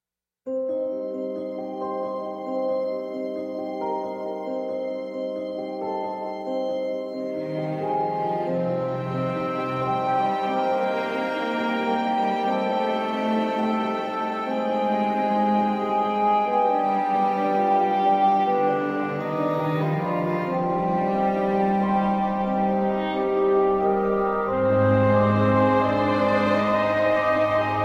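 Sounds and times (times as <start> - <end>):
dramatic fantasy music: 0.5 - 27.8.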